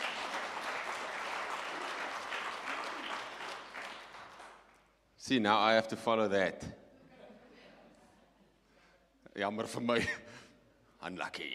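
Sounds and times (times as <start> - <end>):
audience clapping: 0.0 - 5.0
speech: 5.3 - 6.8, 9.4 - 10.4, 11.0 - 11.5.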